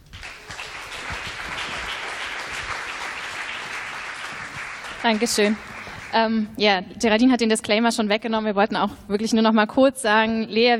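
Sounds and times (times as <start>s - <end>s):
audience applause: 0.0s - 6.2s
speech: 5.0s - 10.7s.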